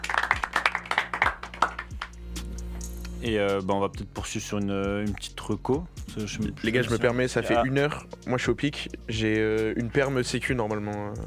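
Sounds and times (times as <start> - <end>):
applause: 0.0 - 2.2
speech: 3.2 - 11.2.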